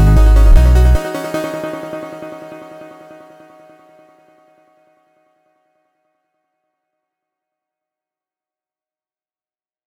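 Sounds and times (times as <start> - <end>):
keygen chiptune melody: 0.0 - 3.4.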